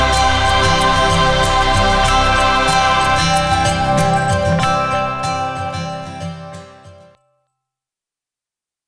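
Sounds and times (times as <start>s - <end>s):
epic modern orchestral music: 0.0s - 5.4s.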